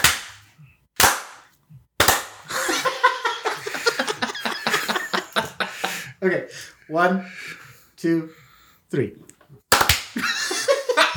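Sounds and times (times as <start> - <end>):
single hand clap to sync microphones: 0.0 - 0.4, 1.0 - 2.5, 9.7 - 10.2
laughter: 2.5 - 6.1, 10.2 - 11.1
speech: 6.2 - 9.3.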